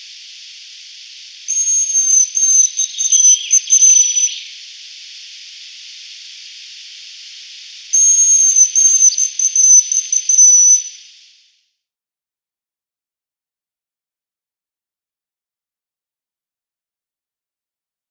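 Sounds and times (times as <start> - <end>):
male Hazel Grouse display call: 0.0 - 11.5.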